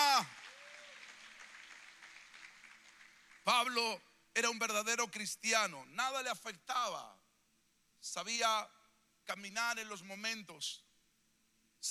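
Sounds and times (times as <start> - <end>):
audience applause: 0.0 - 3.4
speech: 3.6 - 7.2, 8.0 - 10.8.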